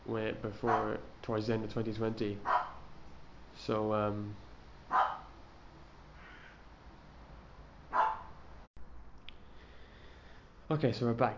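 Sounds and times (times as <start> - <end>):
quiet hiss: 0.0 - 11.3
speech: 0.1 - 2.6, 3.6 - 5.0, 10.7 - 11.3
pet dog barking: 0.6 - 1.0, 2.4 - 2.8, 4.9 - 5.3, 7.9 - 8.4.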